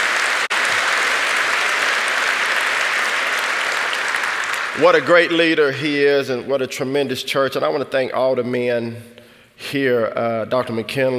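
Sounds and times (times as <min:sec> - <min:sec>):
audience applause: 0:00.0 - 0:06.0
speech: 0:04.8 - 0:11.1.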